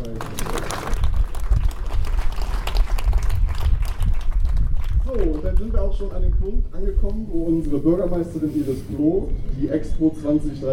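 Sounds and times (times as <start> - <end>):
audience applause: 0.0 - 4.9
speech: 5.8 - 10.7.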